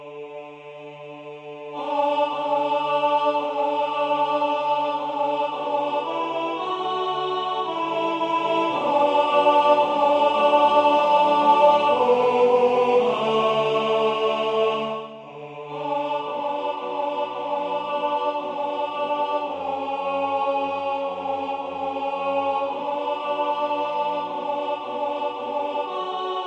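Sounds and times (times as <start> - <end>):
alto voice singing a choral piece: 0.0 - 26.4.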